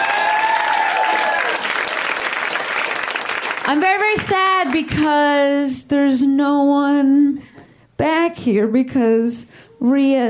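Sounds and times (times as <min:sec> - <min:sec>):
audience applause: 0:00.0 - 0:04.8
speech: 0:03.7 - 0:10.2.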